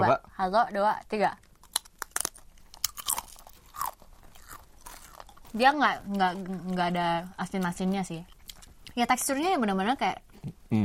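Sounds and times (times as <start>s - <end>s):
speech: 0.2s - 1.5s, 5.5s - 8.3s, 9.0s - 10.8s
person crunching dried potato chips: 1.4s - 6.9s.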